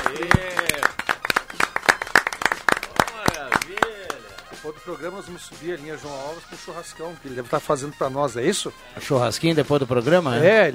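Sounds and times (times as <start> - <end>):
round of applause: 0.0 - 4.6
speech: 4.7 - 10.7.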